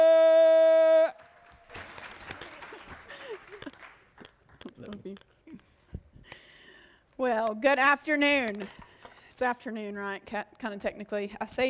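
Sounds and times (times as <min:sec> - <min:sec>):
audience applause welcoming a speaker to the stage: 0:01.0 - 0:05.0
speech: 0:07.2 - 0:08.8, 0:09.4 - 0:11.6.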